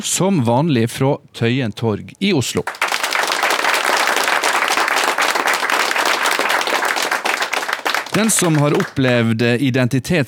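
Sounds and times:
speech: 0:00.0 - 0:03.0, 0:08.2 - 0:10.2
crowd applauding: 0:02.6 - 0:09.4.

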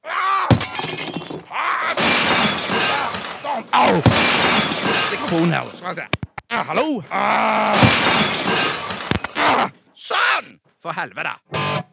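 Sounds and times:
computer screen being smashed: 0:00.5 - 0:05.8, 0:07.8 - 0:09.4
glass and plastic shattering: 0:00.5 - 0:05.9, 0:07.8 - 0:09.4
speech: 0:05.3 - 0:08.8, 0:09.5 - 0:11.8.

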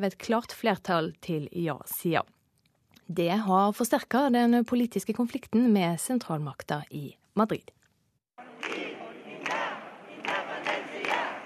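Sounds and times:
speech: 0:00.0 - 0:02.4, 0:03.1 - 0:07.8
crowd clapping: 0:08.4 - 0:11.4.

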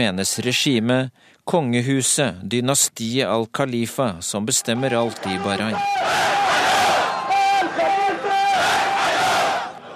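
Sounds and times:
speech: 0:00.0 - 0:06.9
angry demonstrators shouting slogans: 0:04.6 - 0:09.9.

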